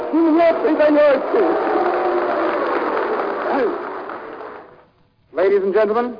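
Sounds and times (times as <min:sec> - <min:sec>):
crowd booing in a hall: 0:00.0 - 0:04.8
speech: 0:00.1 - 0:01.8, 0:03.5 - 0:03.8, 0:05.4 - 0:06.1.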